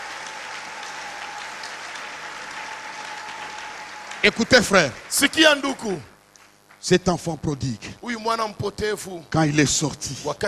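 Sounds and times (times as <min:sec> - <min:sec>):
church congregation clapping for the Lord: 0:00.0 - 0:07.0
speech: 0:04.2 - 0:06.1, 0:06.8 - 0:10.4.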